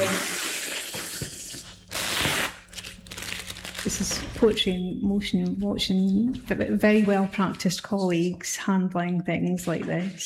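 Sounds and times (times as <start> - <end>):
paper tape being unwrapped from a painting: 0.7 - 4.4
speech: 3.8 - 10.2.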